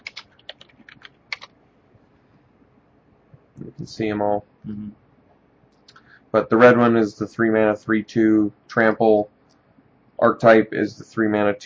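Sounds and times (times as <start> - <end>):
typing a card name into a search box on a computer keyboard: 0.0 - 1.5
speech: 3.6 - 5.0, 6.3 - 9.3, 10.2 - 11.6.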